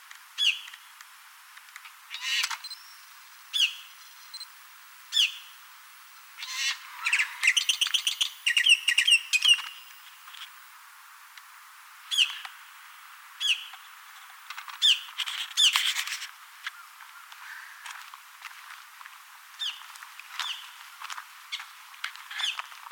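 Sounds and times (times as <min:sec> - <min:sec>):
bird calls: 0:00.4 - 0:00.8, 0:02.1 - 0:02.8, 0:03.5 - 0:04.4, 0:05.1 - 0:05.6, 0:06.4 - 0:10.0, 0:12.1 - 0:12.6, 0:13.4 - 0:13.9, 0:14.7 - 0:17.9, 0:19.6 - 0:21.7, 0:22.3 - 0:22.7.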